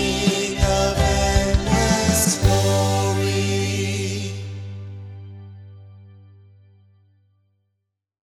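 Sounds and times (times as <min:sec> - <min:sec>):
Lenten Gospel Acclamation singing: 0:00.0 - 0:05.2.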